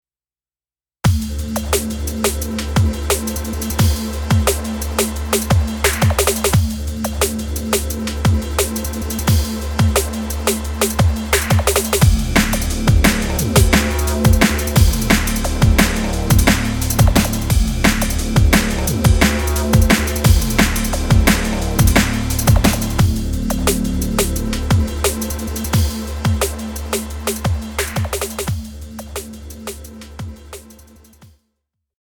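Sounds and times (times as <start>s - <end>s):
drum and bass music: 1.1s - 31.3s.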